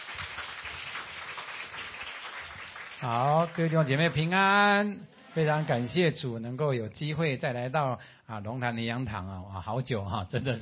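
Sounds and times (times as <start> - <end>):
audience clapping in welcome: 0.0 - 4.6
speech: 3.0 - 10.6.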